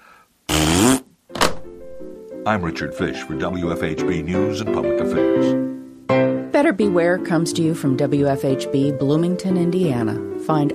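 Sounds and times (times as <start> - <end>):
Bronx cheer raspberry blown with the lips: 0.5 - 1.1
speech: 2.4 - 10.7.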